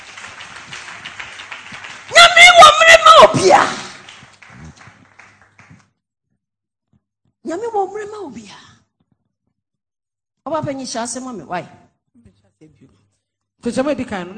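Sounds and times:
audience clapping: 0.0s - 6.0s
people shouting: 2.1s - 4.0s
speech: 3.2s - 3.8s, 10.5s - 11.8s, 13.6s - 14.3s.

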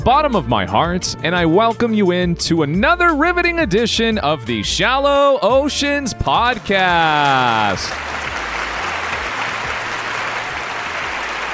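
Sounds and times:
speech: 0.1s - 8.3s
warm applause: 6.6s - 11.5s.

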